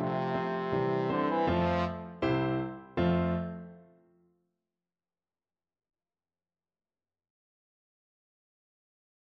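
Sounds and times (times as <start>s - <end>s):
trombone: 0.0s - 2.2s.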